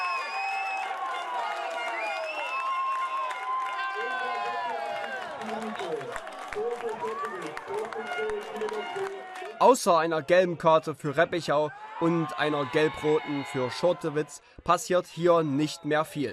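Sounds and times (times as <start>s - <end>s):
football fans cheering after a goal: 0.0s - 10.4s, 11.1s - 14.4s
scattered clapping: 0.1s - 9.6s
speech: 5.4s - 16.3s.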